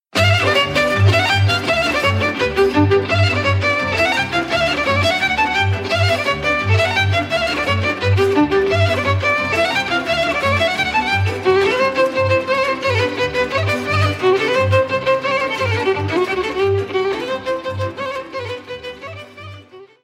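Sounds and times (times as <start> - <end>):
Romanian folk dance music: 0.1 - 20.0.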